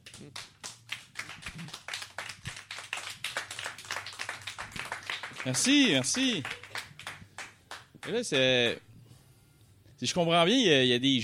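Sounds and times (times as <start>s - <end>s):
crowd applauding: 0.0s - 8.2s
speech: 0.2s - 0.6s, 5.4s - 6.6s, 8.0s - 8.9s, 10.0s - 11.2s.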